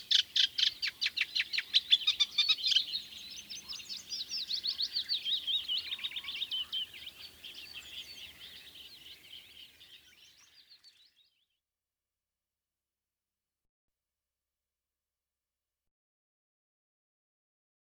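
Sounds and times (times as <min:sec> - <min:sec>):
Eurasian reed warbler singing: 0:00.0 - 0:11.0.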